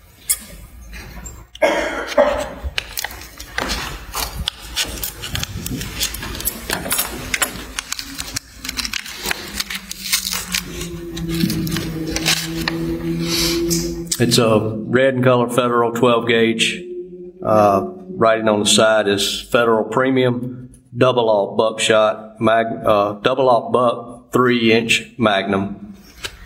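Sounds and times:
evidence package being opened in a courtroom, rustling and crinkling: 2.1s - 13.9s
low steady tone: 5.5s - 20.9s
speech: 14.2s - 16.8s, 17.4s - 25.8s.

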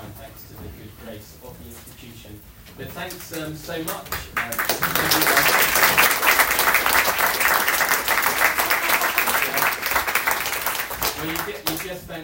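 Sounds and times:
speech: 1.2s - 5.6s, 11.2s - 12.2s
hearty round of applause: 4.0s - 12.0s.

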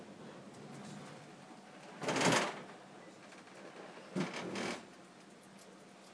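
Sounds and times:
on train diverting around Bristol: 0.2s - 4.7s.

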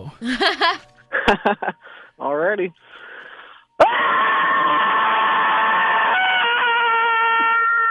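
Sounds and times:
speech: 0.1s - 3.1s
laughter: 0.2s - 1.8s
person's scary movie scream: 3.8s - 7.8s.

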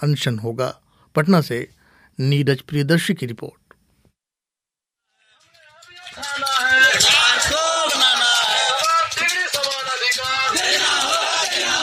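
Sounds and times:
speech: 0.0s - 3.6s
protesting teachers on hunger strike in Patna chanting slogans: 5.4s - 11.8s.

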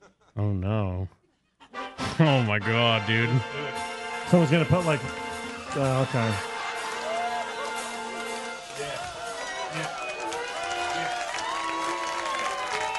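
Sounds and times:
speech: 0.4s - 1.2s, 2.2s - 6.5s, 9.7s - 10.0s
studio audience applause: 4.4s - 12.9s
studio audience cheering and whooping: 5.8s - 12.9s.

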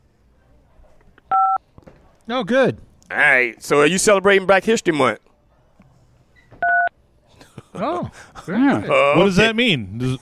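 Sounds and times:
telephone keypad beep from caller: 1.3s - 1.6s, 6.6s - 6.9s
speech: 2.3s - 5.2s, 7.8s - 10.2s.

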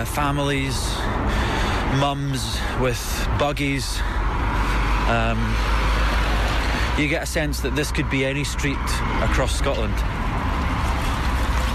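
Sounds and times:
speech: 0.0s - 1.3s, 1.9s - 4.5s, 5.1s - 5.8s, 7.0s - 10.2s
cars passing on a busy street in Govan Hill: 0.0s - 11.7s.

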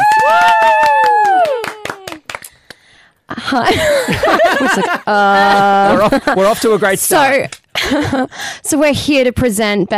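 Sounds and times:
person letting out a loud whoop: 0.0s - 2.2s
small group clapping: 0.0s - 3.0s
laughter: 3.4s - 7.0s
speech: 4.8s - 9.9s.

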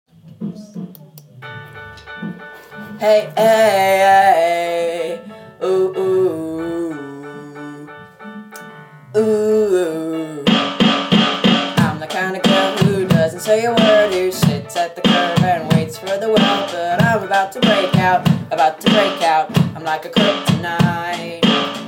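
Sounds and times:
person singing: 2.9s - 10.8s, 11.7s - 21.8s
drums: 10.5s - 21.8s.

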